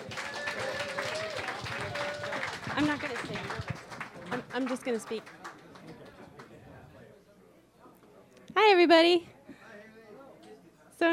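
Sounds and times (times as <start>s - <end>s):
audience applause at a Celtic music gathering in Concord: 0.0s - 6.6s
speech: 2.8s - 3.4s, 4.6s - 5.4s, 8.7s - 9.3s.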